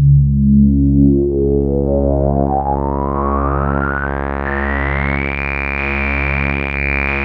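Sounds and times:
Prophet 5 synthesizer note C sharp 2: 0:01.1 - 0:07.2.

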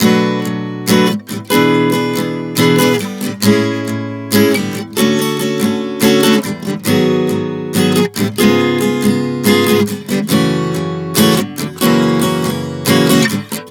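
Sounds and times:
acoustic guitar chord progression in B minor: 0:00.0 - 0:13.6.

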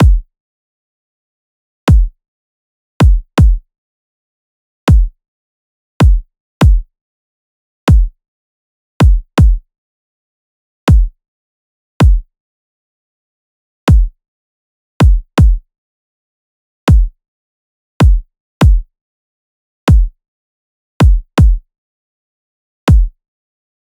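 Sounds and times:
kick drum loop: 0:00.0 - 0:00.3, 0:01.9 - 0:02.2, 0:03.0 - 0:03.6, 0:04.9 - 0:05.2, 0:06.0 - 0:06.9, 0:07.9 - 0:08.2, 0:09.0 - 0:09.6, 0:10.9 - 0:11.2, 0:12.0 - 0:12.2, 0:13.9 - 0:14.2, 0:15.0 - 0:15.6, 0:16.9 - 0:17.2, 0:18.0 - 0:18.9, 0:19.9 - 0:20.2, 0:21.0 - 0:21.6, 0:22.9 - 0:23.2.

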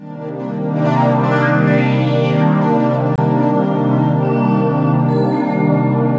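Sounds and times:
ambient atmosphere sweep: 0:00.0 - 0:06.1.

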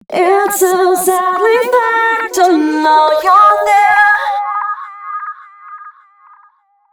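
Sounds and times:
woman singing hookline: 0:00.0 - 0:05.2.

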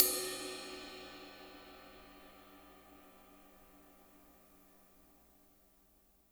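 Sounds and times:
ride cymbal: 0:00.0 - 0:03.9.

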